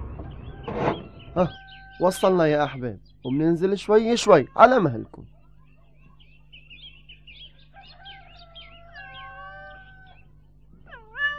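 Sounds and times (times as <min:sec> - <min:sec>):
cat and her kittens meowing on a farm: 0:00.0 - 0:02.8, 0:07.7 - 0:11.3
speech: 0:00.7 - 0:05.4.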